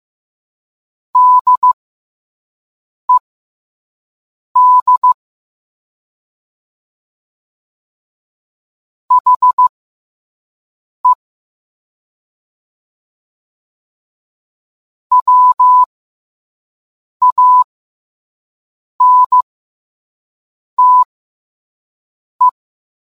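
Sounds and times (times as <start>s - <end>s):
morse code beeps: 1.2s - 1.8s, 4.6s - 5.2s, 9.1s - 9.7s, 15.1s - 15.9s, 17.2s - 17.7s, 19.0s - 19.4s, 20.8s - 21.1s.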